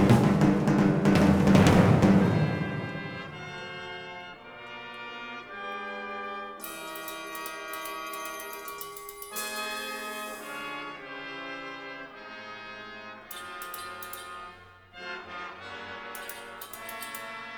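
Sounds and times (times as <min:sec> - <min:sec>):
jazz drummer: 0:00.0 - 0:04.3
percussion ensemble: 0:00.0 - 0:04.6, 0:06.6 - 0:11.0, 0:16.2 - 0:17.5.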